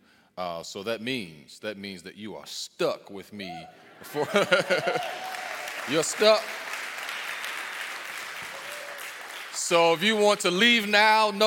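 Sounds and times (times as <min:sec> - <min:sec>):
speech: 0:00.4 - 0:06.6, 0:09.7 - 0:11.4
laughter: 0:03.7 - 0:05.3
church congregation clapping: 0:04.3 - 0:11.4.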